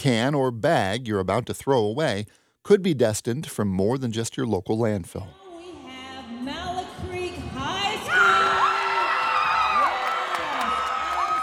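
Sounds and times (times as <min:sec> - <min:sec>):
speech: 0:00.0 - 0:05.8
spectators cheering at a student recycled-fashion runway show in a mall: 0:07.8 - 0:11.4.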